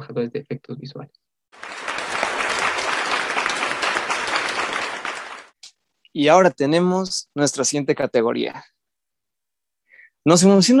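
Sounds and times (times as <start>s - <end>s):
speech: 0.2s - 1.7s, 6.1s - 8.8s, 10.2s - 10.7s
audience applause: 1.6s - 5.6s.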